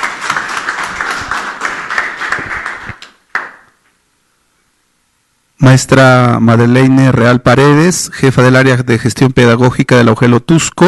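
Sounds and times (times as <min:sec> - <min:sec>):
audience applause: 0:00.0 - 0:03.7
speech: 0:05.6 - 0:10.8.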